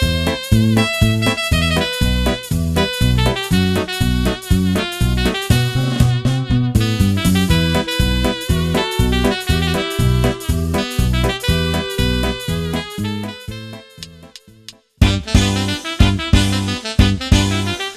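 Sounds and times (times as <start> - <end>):
saxophone playing ballo liscio polka and waltz: 0.0 - 14.4, 15.0 - 17.9.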